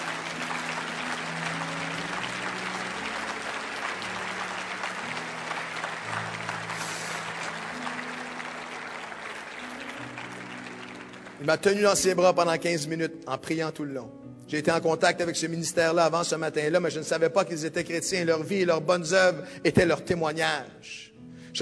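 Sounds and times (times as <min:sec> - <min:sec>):
audience applause: 0:00.0 - 0:12.1
speech: 0:11.4 - 0:21.6.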